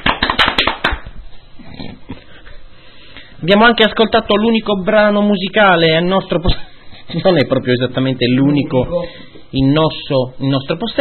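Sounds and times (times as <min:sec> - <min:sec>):
studio audience applauding on cue: 0:00.0 - 0:01.0
speech: 0:03.4 - 0:10.9.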